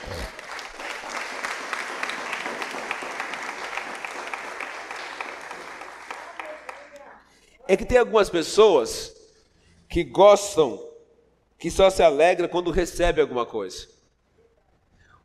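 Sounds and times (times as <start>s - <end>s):
applause for Jesus: 0.0s - 7.3s
speech: 7.7s - 9.1s, 10.0s - 10.9s, 11.6s - 14.0s.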